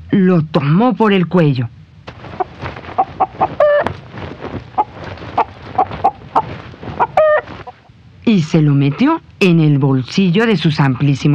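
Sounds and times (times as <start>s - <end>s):
speech: 0.1s - 1.8s, 8.3s - 11.3s
rooster clucking: 2.1s - 7.9s
rooster crowing: 3.0s - 3.9s, 4.8s - 7.8s.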